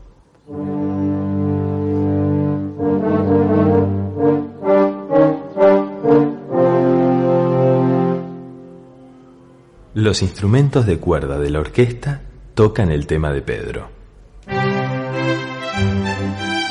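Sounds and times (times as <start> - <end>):
French horns playing: 0.5 - 9.6, 14.5 - 16.6
speech: 10.0 - 14.0.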